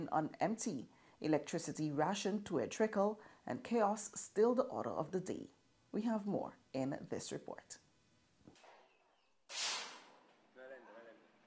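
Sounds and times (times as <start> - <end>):
speech: 0.0 - 7.8
gunshot at a recreational shooting range in a Havana park: 8.5 - 10.5.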